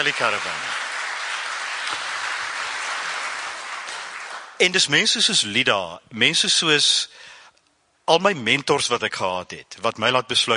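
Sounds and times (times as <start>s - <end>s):
speech: 0.0s - 0.7s, 4.6s - 7.2s, 8.1s - 10.5s
audience applause: 0.0s - 4.6s.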